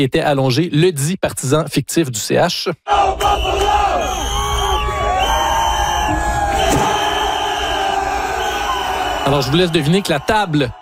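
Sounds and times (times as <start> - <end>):
speech: 0.0 - 4.2, 9.3 - 10.8
crowd shouting encouragement: 2.9 - 10.8.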